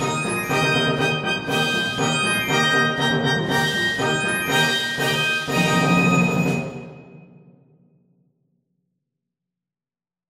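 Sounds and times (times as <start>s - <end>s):
concert brass fanfare in E flat: 0.0s - 6.9s.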